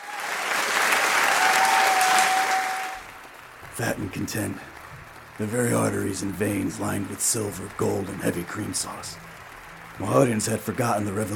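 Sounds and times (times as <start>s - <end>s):
audience applause: 0.0s - 11.3s
speech: 3.8s - 4.8s, 5.4s - 9.4s, 10.0s - 11.3s.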